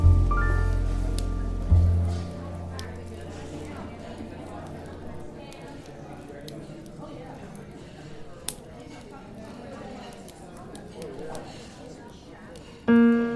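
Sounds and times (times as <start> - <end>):
warm low jazz chords in a café: 0.0 - 3.3, 12.9 - 13.3
soft café chatter: 0.0 - 13.3.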